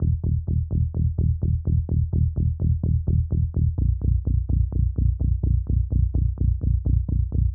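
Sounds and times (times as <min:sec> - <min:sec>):
bass: 0:00.0 - 0:07.5.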